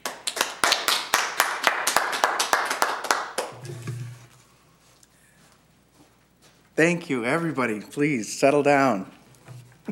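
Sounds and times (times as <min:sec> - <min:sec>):
sparse clapping from a small audience welcoming a speaker: 0:00.0 - 0:03.6
speech: 0:06.8 - 0:09.2.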